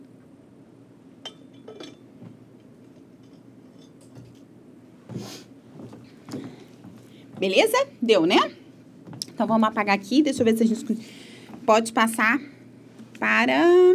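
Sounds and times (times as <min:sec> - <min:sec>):
low steady hum: 0:00.0 - 0:13.9
glass clinking while drinking water: 0:01.2 - 0:02.1
speech: 0:07.4 - 0:08.6, 0:09.4 - 0:12.5, 0:13.2 - 0:13.9.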